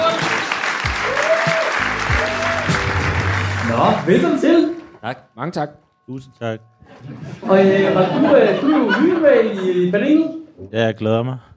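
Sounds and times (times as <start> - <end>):
audience applauding a comedian: 0.0 - 4.7
speech: 3.8 - 11.5
laughter: 6.8 - 10.0.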